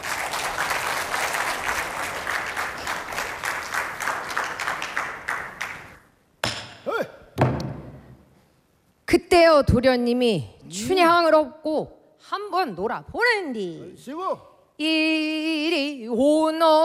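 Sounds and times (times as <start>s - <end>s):
audience applause: 0.0s - 6.0s
speech: 9.4s - 16.8s.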